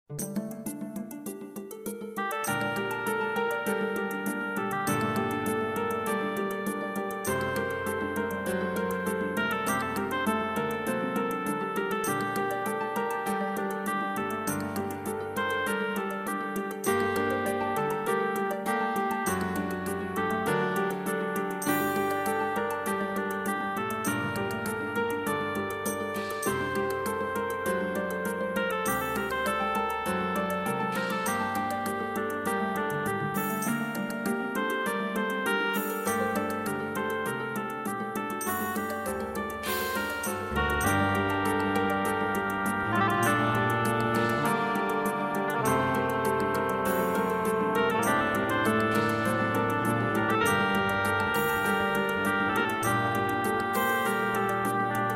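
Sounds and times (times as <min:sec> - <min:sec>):
MIDI music: 0:00.1 - 0:55.1.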